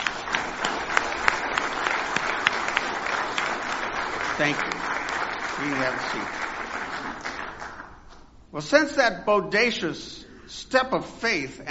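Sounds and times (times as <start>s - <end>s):
audience applause: 0.0s - 8.0s
speech: 4.4s - 4.9s, 5.6s - 6.4s, 8.5s - 11.7s.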